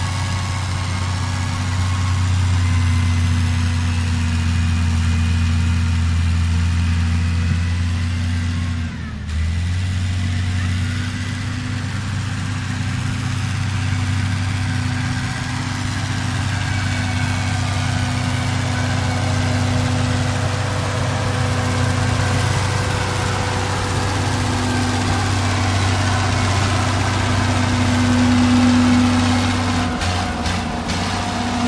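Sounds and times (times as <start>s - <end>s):
bulldozer working: 0.0s - 31.6s.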